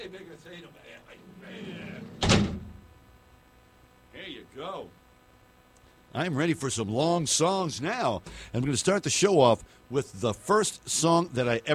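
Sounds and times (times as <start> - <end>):
speech: 0.0 - 2.5, 4.2 - 5.0, 6.1 - 11.7
low noise: 0.0 - 11.7
heavy door slamming shut: 1.5 - 2.8.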